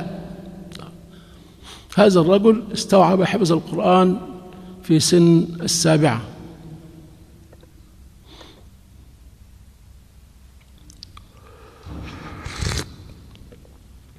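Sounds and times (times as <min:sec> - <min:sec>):
speech: 0:02.0 - 0:06.3
hot tea sipped with a slurp: 0:11.4 - 0:13.2.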